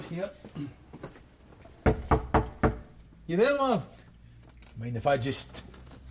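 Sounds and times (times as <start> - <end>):
speech: 0.0 - 0.8, 3.3 - 4.0, 4.8 - 5.7
firm knocks on a door: 1.8 - 2.9.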